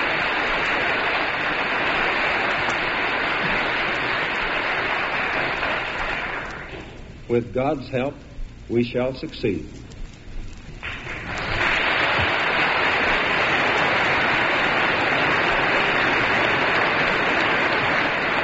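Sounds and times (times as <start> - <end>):
Congress applauding a presidential speech: 0.0 - 7.0, 10.8 - 18.4
speech: 7.3 - 9.8.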